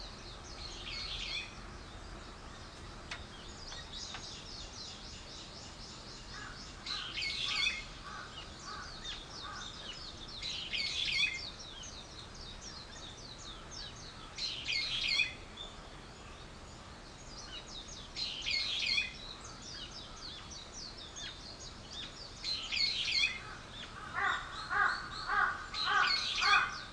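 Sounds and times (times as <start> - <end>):
several birds twittering: 0.0 - 26.9
harsh cawing calls: 6.3 - 9.8, 23.4 - 26.9.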